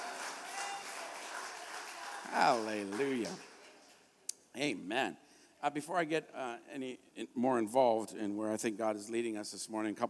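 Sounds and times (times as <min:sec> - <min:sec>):
audience hand clapping: 0:00.0 - 0:04.1
speech: 0:02.3 - 0:03.5, 0:04.6 - 0:10.0.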